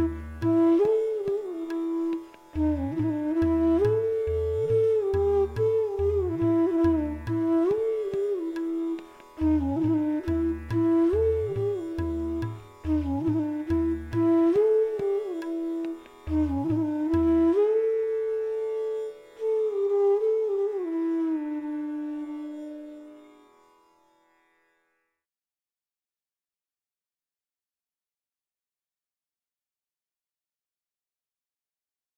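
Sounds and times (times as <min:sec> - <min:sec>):
bansuri flute playing a raga: 0:00.0 - 0:24.3.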